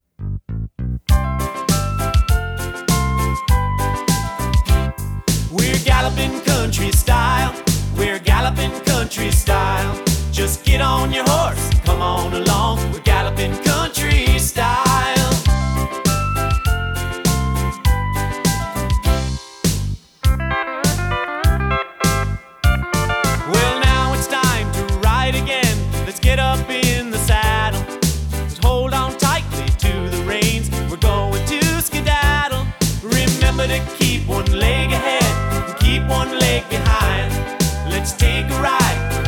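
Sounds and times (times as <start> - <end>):
galloping country style music: 1.1 - 39.2.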